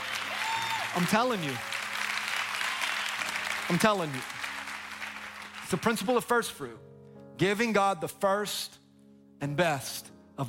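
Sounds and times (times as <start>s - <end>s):
audience applause: 0.0s - 6.2s
speech: 1.0s - 1.7s, 3.7s - 4.3s, 5.7s - 8.8s, 9.4s - 10.4s.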